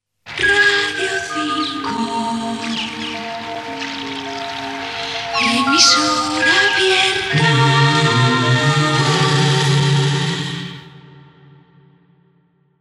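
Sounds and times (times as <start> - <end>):
jingle: 0.4 - 10.2.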